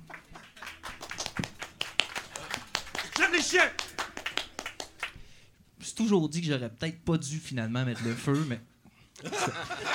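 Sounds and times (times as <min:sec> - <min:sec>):
audience clapping: 0:00.0 - 0:05.4
speech: 0:03.4 - 0:03.8, 0:06.0 - 0:09.9
laughter: 0:09.2 - 0:09.9.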